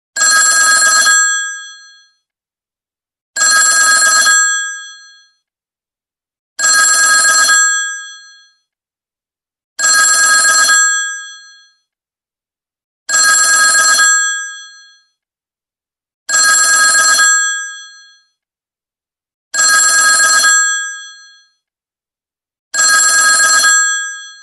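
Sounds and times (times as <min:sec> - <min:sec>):
old telephone: 0:00.2 - 0:01.7, 0:03.4 - 0:05.0, 0:06.6 - 0:08.1, 0:09.8 - 0:10.9, 0:13.1 - 0:14.2, 0:16.3 - 0:17.4, 0:19.6 - 0:21.1, 0:22.8 - 0:24.4.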